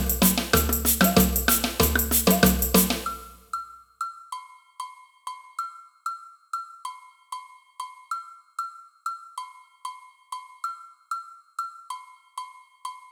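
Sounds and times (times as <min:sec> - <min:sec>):
agogo bells in a samba band: 0:00.0 - 0:03.4.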